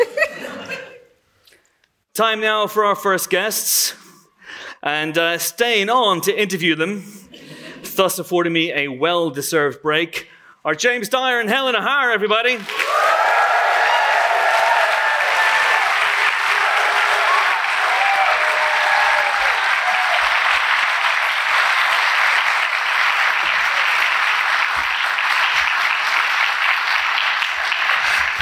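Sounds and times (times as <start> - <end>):
speech: 2.2 - 7.2, 8.0 - 12.8
audience applause: 12.6 - 28.4.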